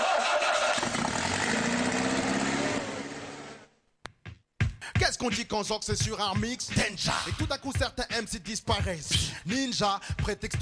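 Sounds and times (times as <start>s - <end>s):
Citroën BX car engine starting: 0.5s - 3.7s
speech: 5.2s - 10.6s.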